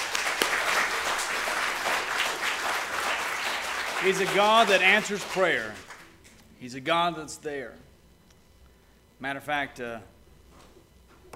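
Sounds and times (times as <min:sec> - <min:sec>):
audience applause: 0:00.0 - 0:06.2
speech: 0:04.0 - 0:05.9, 0:06.6 - 0:07.9, 0:09.2 - 0:10.1.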